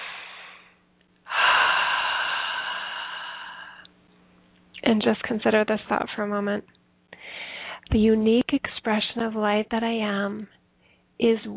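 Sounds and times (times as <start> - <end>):
deep breath in through the nose and out through the mouth: 0.0 - 3.9, 7.2 - 7.9
speech: 4.9 - 6.8, 7.9 - 10.6, 11.2 - 11.5.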